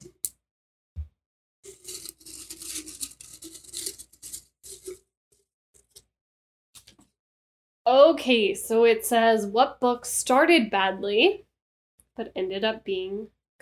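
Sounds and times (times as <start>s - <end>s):
paper topic slip rustling and scratching as it is drawn: 1.7s - 5.0s
speech: 7.9s - 11.5s, 12.2s - 13.5s.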